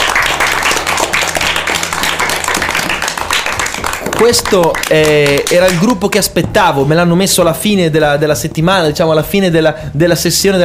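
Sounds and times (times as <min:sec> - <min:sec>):
audience applause: 0:00.0 - 0:06.0
speech: 0:04.2 - 0:10.6.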